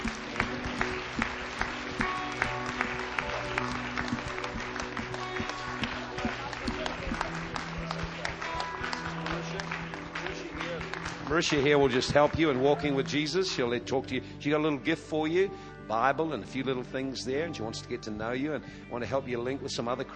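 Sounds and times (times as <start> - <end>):
audience applause: 0.0 - 13.4
murmur of voices: 0.0 - 13.8
speech: 11.3 - 20.1.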